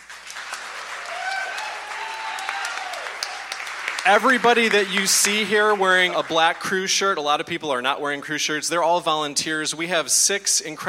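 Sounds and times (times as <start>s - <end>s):
crowd applause: 0.0s - 6.8s
faint cheers and whistles: 1.0s - 3.6s
speech: 4.0s - 10.8s.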